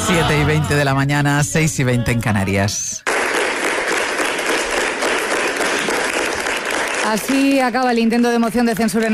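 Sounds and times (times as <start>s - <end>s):
speech: 0.1s - 3.1s, 7.1s - 9.1s
applause for the mayor at an extraordinary council session: 3.0s - 9.1s.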